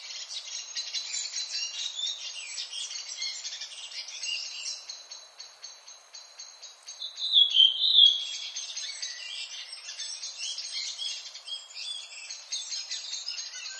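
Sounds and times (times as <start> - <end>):
redwing song: 0.0 - 13.7.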